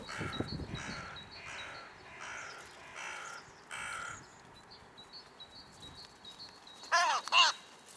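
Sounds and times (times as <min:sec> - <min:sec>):
hooded crow Corvus cornix: 0:00.1 - 0:04.2, 0:06.8 - 0:07.8.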